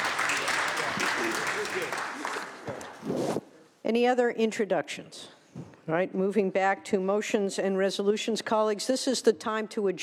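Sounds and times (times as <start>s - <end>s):
applause welcoming guests on the California Senate floor: 0.0s - 3.0s
speech: 3.9s - 10.0s.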